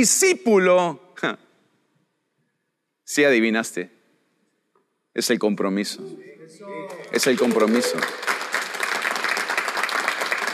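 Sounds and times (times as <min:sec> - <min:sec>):
speech: 0:00.0 - 0:01.4, 0:03.1 - 0:04.0, 0:05.2 - 0:08.4
audience applauding: 0:06.8 - 0:10.5.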